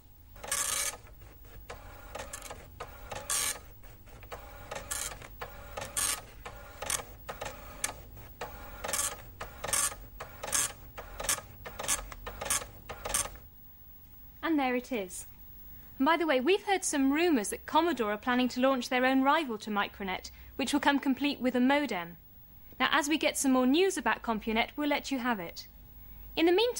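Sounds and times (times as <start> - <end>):
printer printing out a message: 0.4 - 13.5
speech: 14.6 - 15.3, 16.0 - 22.2, 22.8 - 25.7, 26.4 - 26.7.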